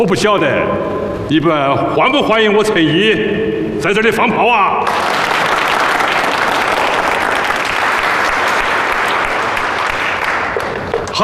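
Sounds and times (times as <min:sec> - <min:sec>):
speech: 0:00.0 - 0:05.1
audience applause: 0:04.8 - 0:11.1.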